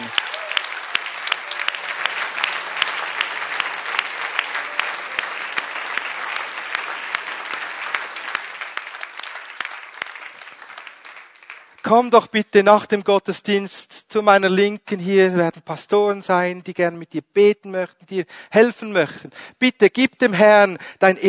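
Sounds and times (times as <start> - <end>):
people clapping in church: 0.0 - 12.2
speech: 11.9 - 21.2.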